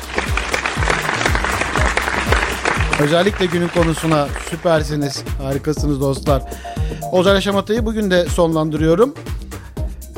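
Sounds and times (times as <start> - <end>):
audience applauding: 0.0 - 5.0
speech: 3.0 - 9.3.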